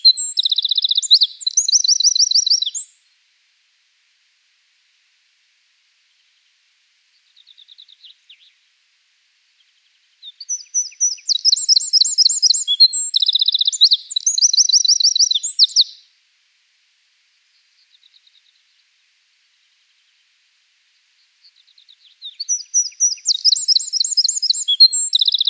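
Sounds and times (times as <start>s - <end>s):
Eurasian wren singing high trills: 0.0s - 2.9s, 10.4s - 16.0s, 22.0s - 25.4s.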